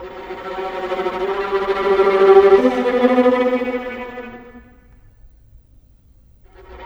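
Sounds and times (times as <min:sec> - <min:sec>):
cinematic viola: 0:00.0 - 0:05.0.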